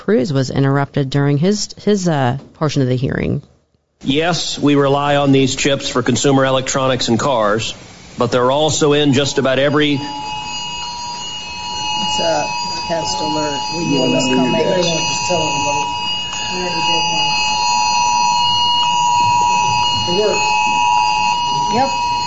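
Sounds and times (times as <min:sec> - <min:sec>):
speech: 0:00.0 - 0:10.4, 0:12.2 - 0:17.4, 0:20.1 - 0:20.6, 0:21.7 - 0:22.0
emergency test alert tone: 0:08.6 - 0:22.2.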